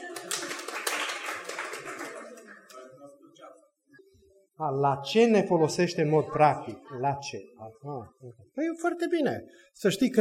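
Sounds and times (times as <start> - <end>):
applause, hands clapping: 0.0 - 3.0
speech: 4.6 - 10.1.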